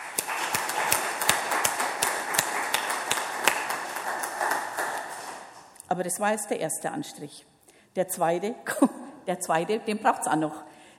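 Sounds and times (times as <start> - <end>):
crowd clapping: 0.0 - 5.7
speech: 6.0 - 10.7.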